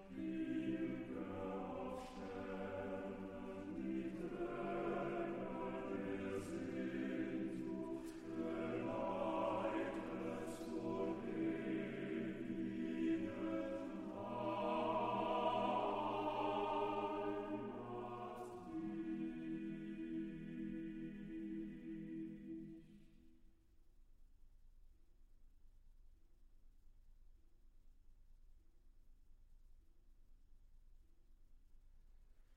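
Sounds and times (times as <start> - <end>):
choir singing: 0.0 - 23.2.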